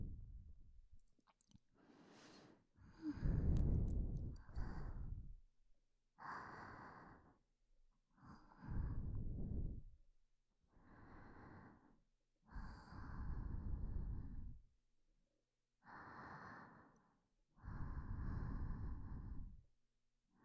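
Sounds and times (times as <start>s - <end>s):
person breathing in sleep: 1.8s - 5.3s, 6.2s - 7.4s, 8.2s - 9.9s, 10.8s - 11.9s, 12.5s - 14.6s, 15.8s - 19.6s.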